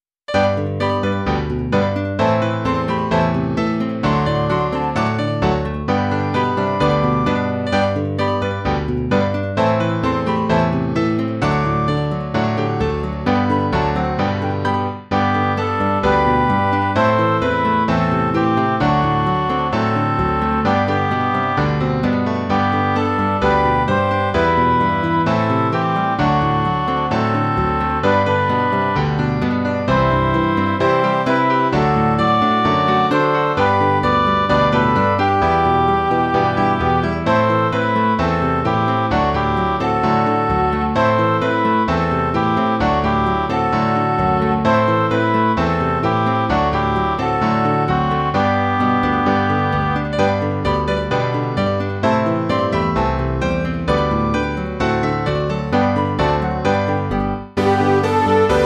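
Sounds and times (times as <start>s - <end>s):
midi music: 0.3s - 58.6s.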